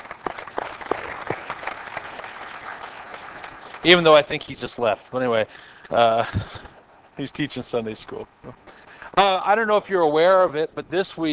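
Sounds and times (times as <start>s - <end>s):
church congregation applause: 0.0s - 4.6s
speech: 3.8s - 11.3s.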